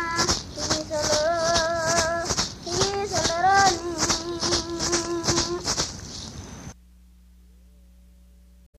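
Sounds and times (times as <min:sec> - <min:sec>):
Guaymi indigenous chant: 0:00.0 - 0:05.8.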